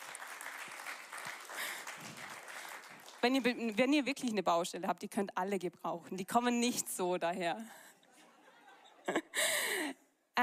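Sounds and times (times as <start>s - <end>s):
audience applause: 0.0s - 3.4s
speech: 3.2s - 7.8s
laughter: 8.1s - 9.5s.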